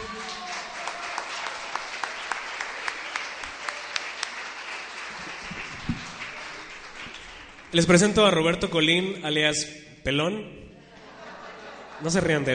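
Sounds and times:
audience applause: 0.0 - 8.0
speech: 7.7 - 10.6, 12.0 - 12.5
laughter: 10.8 - 12.5.

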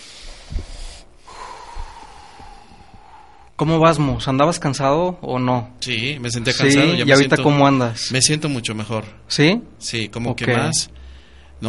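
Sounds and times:
deep breath in and slow exhale during a guided relaxation exercise: 0.0 - 3.6
speech: 3.6 - 11.0.

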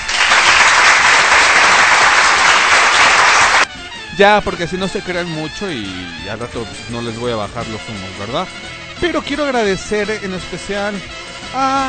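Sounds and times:
applause: 0.0 - 3.7
speech: 4.2 - 11.8.

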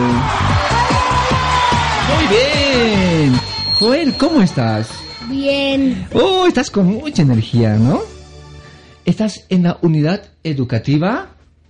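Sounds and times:
audience applause: 0.0 - 5.2
speech: 3.8 - 8.1, 9.1 - 11.3.

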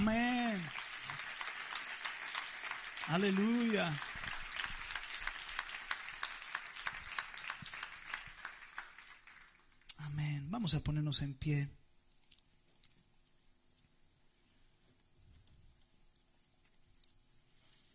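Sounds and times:
audience applauding: 0.0 - 9.9
speech: 3.1 - 4.1, 10.6 - 11.8.

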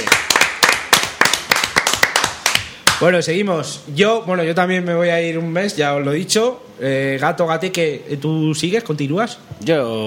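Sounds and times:
applause: 0.0 - 3.0
speech: 3.0 - 10.0.

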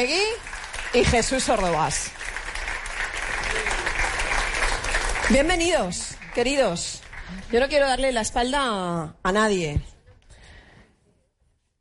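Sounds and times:
speech: 0.0 - 2.4, 5.3 - 9.9
audience applause: 0.1 - 7.9.

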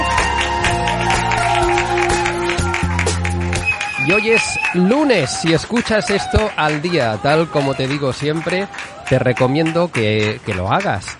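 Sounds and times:
bright musical backing: 0.0 - 5.0
applause: 0.0 - 11.1
speech: 4.1 - 11.1.

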